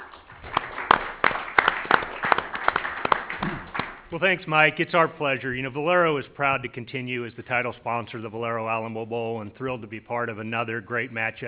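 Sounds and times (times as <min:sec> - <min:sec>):
audience applause: 0:00.0 - 0:04.2
speech: 0:04.1 - 0:11.4.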